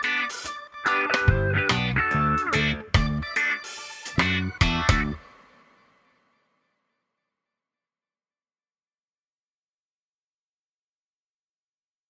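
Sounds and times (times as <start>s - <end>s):
backing track: 0.0s - 5.6s.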